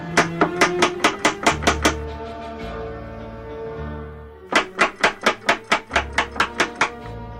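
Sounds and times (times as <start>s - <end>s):
knocking on a door: 0.2s - 2.0s, 4.5s - 7.0s.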